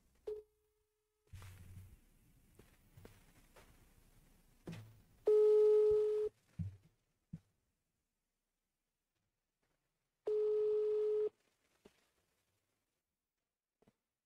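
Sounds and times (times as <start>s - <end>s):
telephone call ringing unanswered: 5.3s - 6.3s, 10.3s - 11.3s.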